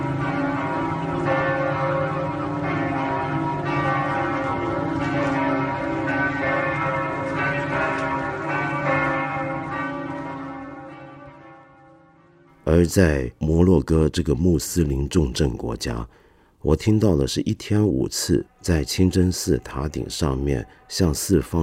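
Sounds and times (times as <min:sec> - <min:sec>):
church bell chiming the quarter hour: 0:00.0 - 0:13.0, 0:17.8 - 0:21.6
speech: 0:12.8 - 0:21.6.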